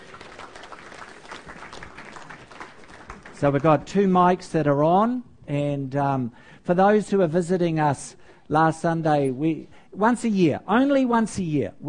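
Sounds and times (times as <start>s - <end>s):
audience applause: 0.0s - 3.6s
speech: 3.4s - 11.8s.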